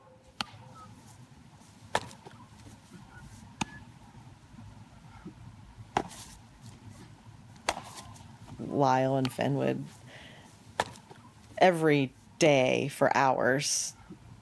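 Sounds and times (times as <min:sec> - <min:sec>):
baseball landing in a glove: 0:01.9 - 0:02.4, 0:05.9 - 0:06.2, 0:07.6 - 0:08.2, 0:10.8 - 0:11.2
speech: 0:08.7 - 0:10.0, 0:11.6 - 0:14.0.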